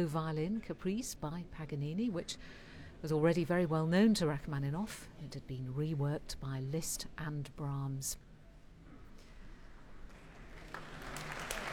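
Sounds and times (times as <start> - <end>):
speech: 0.0 - 8.3
concert hall audience applause: 10.2 - 11.7.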